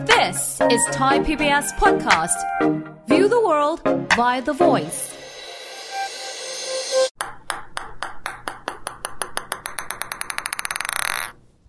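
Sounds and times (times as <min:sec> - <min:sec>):
speech: 0:00.1 - 0:05.1
ping-pong ball bouncing: 0:07.2 - 0:11.3.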